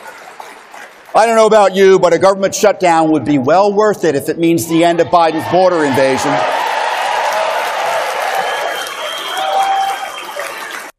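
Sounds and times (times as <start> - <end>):
large crowd cheering and clapping at rally: 0.0 - 1.6, 4.9 - 10.9
speech: 1.1 - 6.5
whistles: 8.3 - 10.9.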